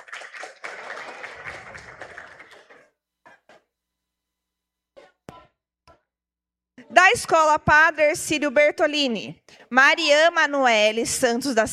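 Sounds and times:
audience applause: 0.0 - 2.9
speech: 7.1 - 11.7.

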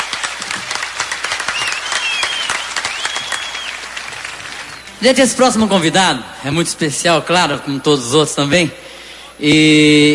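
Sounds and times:
audience applause: 0.0 - 5.0
whistles: 1.4 - 3.9, 4.6 - 5.0
speech: 5.0 - 10.1.

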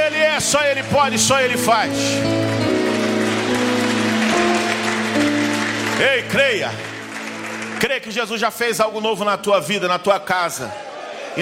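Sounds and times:
audience applauding: 0.0 - 8.9
sustained keyboard chords: 0.0 - 9.8
speech: 0.4 - 2.8, 6.0 - 6.9, 7.8 - 11.4.

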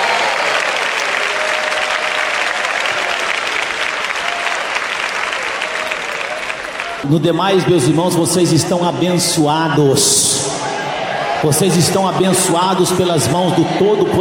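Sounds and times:
audience clapping hands: 0.0 - 8.0
speech: 7.0 - 10.7, 11.4 - 14.1.

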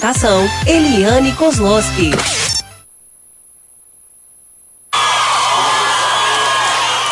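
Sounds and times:
speech: 0.0 - 2.5
audience applause: 4.9 - 7.1.

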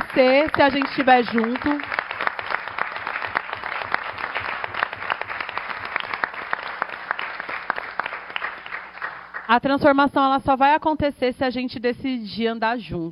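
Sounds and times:
audience applause: 0.0 - 9.5
speech: 0.2 - 1.9, 9.5 - 13.1.

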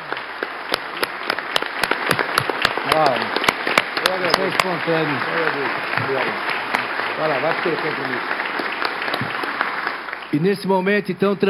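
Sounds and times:
standing crowd applauding warmly: 0.0 - 10.7
speech: 2.9 - 3.4, 4.5 - 6.6, 7.2 - 8.4, 10.3 - 11.4.

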